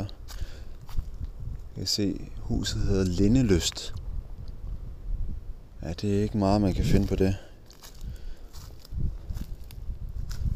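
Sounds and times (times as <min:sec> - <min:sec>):
footsteps pushing through a backyard thicket of small trees: 0:00.0 - 0:01.7, 0:06.8 - 0:10.5
speech: 0:01.8 - 0:04.0, 0:05.8 - 0:07.5
branches swishing and rustling: 0:07.6 - 0:10.5.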